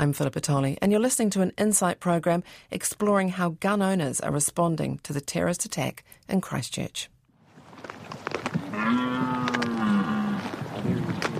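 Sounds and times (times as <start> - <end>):
speech: 0.0 - 7.1
deer stag roaring during the rut: 8.6 - 10.8.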